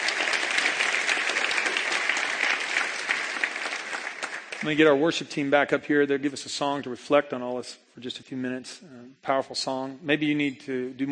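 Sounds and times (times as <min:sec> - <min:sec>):
audience applause: 0:00.0 - 0:05.0
speech: 0:04.6 - 0:11.1.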